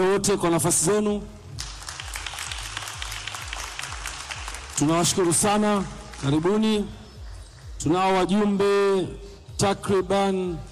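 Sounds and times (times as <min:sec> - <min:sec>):
speech: 0:00.0 - 0:01.4, 0:04.8 - 0:07.0, 0:07.8 - 0:10.7
audience applause at a Young Africans club meeting: 0:01.6 - 0:06.4.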